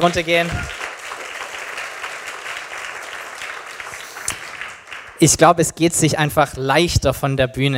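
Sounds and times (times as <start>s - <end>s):
speech: 0.0s - 0.8s, 5.2s - 7.7s
audience applause: 0.0s - 5.3s.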